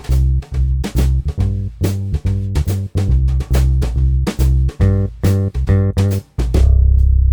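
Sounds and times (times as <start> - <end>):
boogie accompaniment: 0.0 - 7.2.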